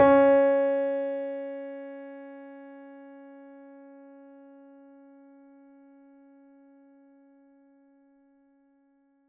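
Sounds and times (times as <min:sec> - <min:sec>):
mini grand piano: 0:00.0 - 0:01.9.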